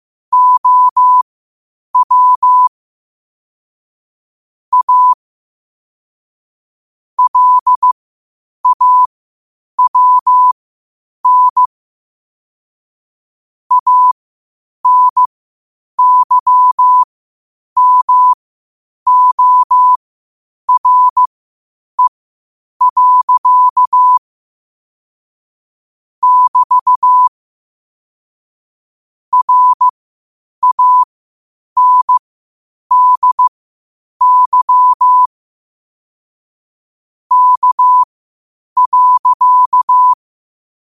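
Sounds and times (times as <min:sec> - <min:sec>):
morse code at 5 wpm: 0:00.3 - 0:01.2, 0:02.0 - 0:02.7, 0:04.7 - 0:05.2, 0:07.2 - 0:08.0, 0:08.6 - 0:09.1, 0:09.8 - 0:10.6, 0:11.2 - 0:11.7, 0:13.7 - 0:14.2, 0:14.8 - 0:15.3, 0:16.0 - 0:17.1, 0:17.8 - 0:18.4, 0:19.1 - 0:20.0, 0:20.7 - 0:21.3, 0:22.8 - 0:24.2, 0:26.2 - 0:27.3, 0:29.3 - 0:29.9, 0:30.6 - 0:31.1, 0:31.8 - 0:32.2, 0:32.9 - 0:33.5, 0:34.2 - 0:35.3, 0:37.3 - 0:38.1, 0:38.8 - 0:40.2.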